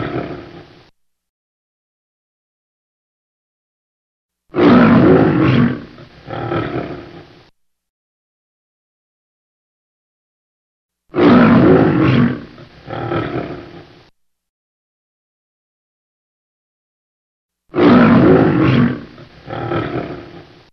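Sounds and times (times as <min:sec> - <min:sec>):
lion roaring: 0:00.0 - 0:00.8, 0:04.5 - 0:07.4, 0:11.1 - 0:14.1, 0:17.7 - 0:20.7.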